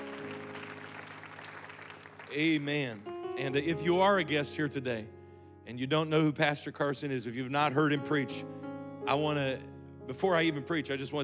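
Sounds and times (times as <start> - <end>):
audience clapping: 0.0 - 3.4
speech: 2.3 - 11.2.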